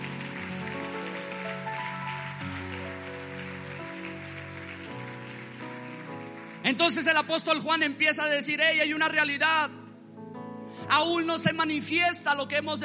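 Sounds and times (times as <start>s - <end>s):
audience applauding loudly: 0.0s - 7.8s
speech: 6.7s - 9.8s, 10.9s - 12.8s.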